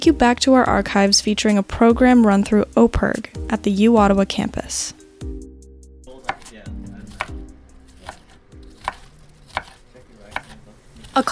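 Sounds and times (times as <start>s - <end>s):
speech: 0.0s - 5.0s, 11.2s - 11.3s
students chopping food in a kitchen: 6.2s - 11.3s.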